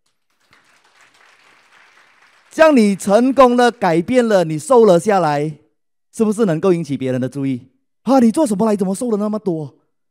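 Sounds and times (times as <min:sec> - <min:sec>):
audience applause: 0:00.0 - 0:04.1
speech: 0:02.6 - 0:05.6, 0:06.2 - 0:09.8.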